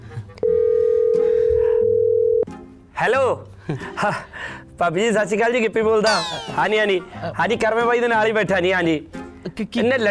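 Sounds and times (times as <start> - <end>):
telephone dial tone while calling a casting director: 0.4 - 2.4
speech: 3.0 - 10.0.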